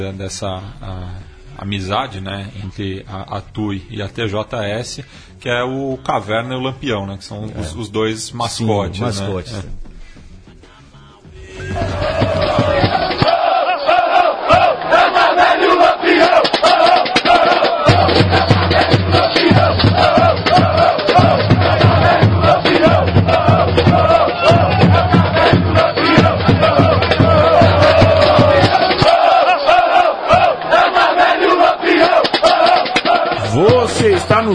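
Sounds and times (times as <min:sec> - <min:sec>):
speech: 0:00.0 - 0:09.9
steady low drumming: 0:11.2 - 0:13.6, 0:14.4 - 0:34.5
football supporters chanting in unison: 0:11.3 - 0:34.5.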